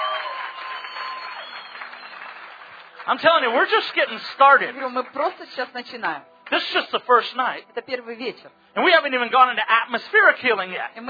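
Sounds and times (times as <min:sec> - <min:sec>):
audience hand clapping: 0:00.0 - 0:05.7, 0:06.4 - 0:06.8
speech: 0:03.1 - 0:11.0.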